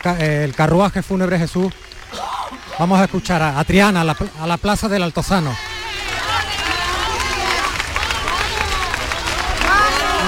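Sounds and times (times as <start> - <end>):
speech: 0.0 - 5.7
large crowd applauding a funeral procession: 0.0 - 10.2
many voices shouting and calling out: 1.6 - 10.2.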